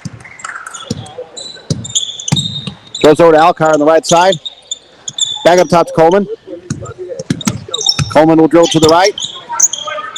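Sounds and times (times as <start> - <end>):
basketball being dribbled up the court in a women's game: 0.0 - 1.1, 1.7 - 3.0, 6.7 - 9.3
noise: 0.0 - 10.1
speech: 3.0 - 4.5, 5.4 - 6.4, 8.2 - 9.2.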